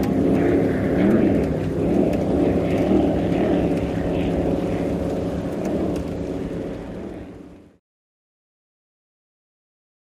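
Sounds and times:
offshore power boat race ambience: 0:00.0 - 0:07.8.

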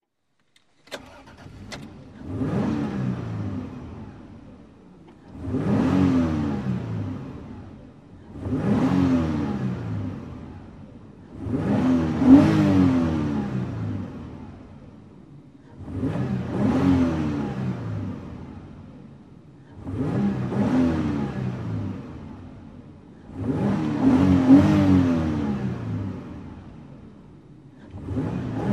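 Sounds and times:
SUV engine starting and revving from interior: 0:00.6 - 0:04.3, 0:05.1 - 0:07.5, 0:08.3 - 0:10.5, 0:11.3 - 0:14.2, 0:15.8 - 0:18.5, 0:19.8 - 0:22.2, 0:23.3 - 0:26.5, 0:27.8 - 0:28.7.

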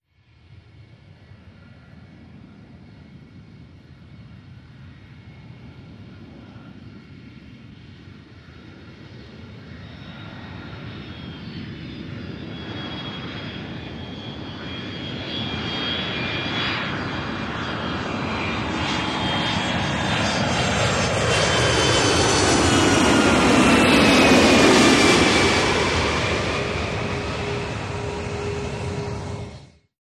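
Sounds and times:
jet flying over: 0:00.4 - 0:29.9
jumbo jet idling at runway threshold: 0:10.2 - 0:29.6.

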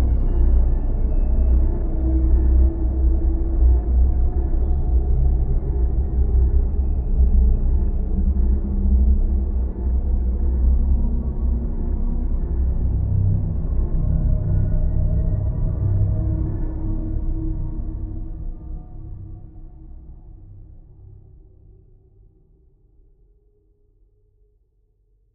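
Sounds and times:
slow deep ambient drone: 0:00.0 - 0:22.2.

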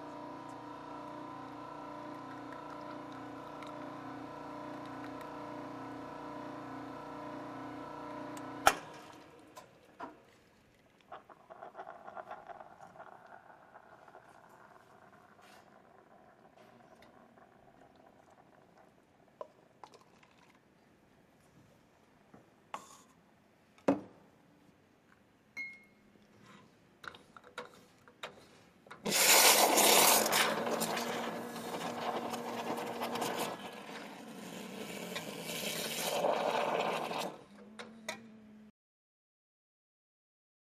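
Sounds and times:
cappuccino coffee machine: 0:00.0 - 0:10.2, 0:11.5 - 0:19.1, 0:29.0 - 0:38.2.

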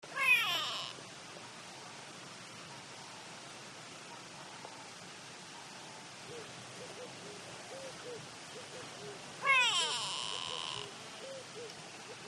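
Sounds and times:
grey go-away-bird nasal calls: 0:06.3 - 0:12.2.

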